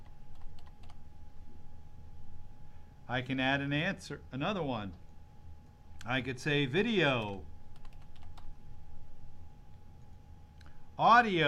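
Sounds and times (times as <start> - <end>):
low hum: 0.0 - 11.4
typing on a computer keyboard: 0.3 - 1.0, 7.1 - 8.5
speech: 3.1 - 5.0, 6.0 - 7.5, 11.0 - 11.4.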